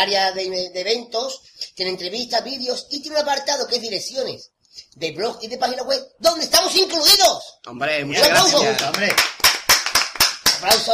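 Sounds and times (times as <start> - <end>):
speech: 0.0 - 9.4, 10.6 - 10.9
applause of sharp hand claps in a quick regular rhythm: 8.4 - 10.9.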